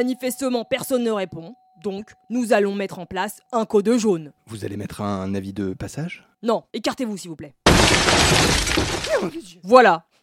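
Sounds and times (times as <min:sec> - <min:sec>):
speech: 0:00.0 - 0:10.1
door being smashed in: 0:07.7 - 0:09.3.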